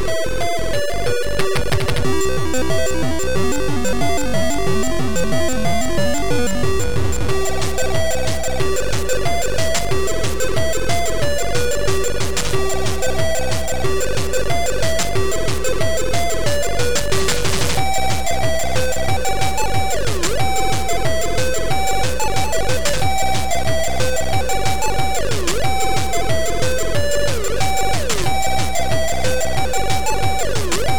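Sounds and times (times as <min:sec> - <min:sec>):
rave music: 0:00.1 - 0:30.9.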